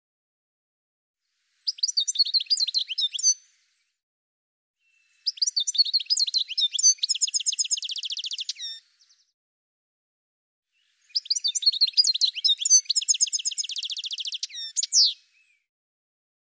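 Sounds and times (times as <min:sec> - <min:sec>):
bird chirping: 0:01.6 - 0:03.9, 0:04.8 - 0:09.3, 0:10.8 - 0:15.7.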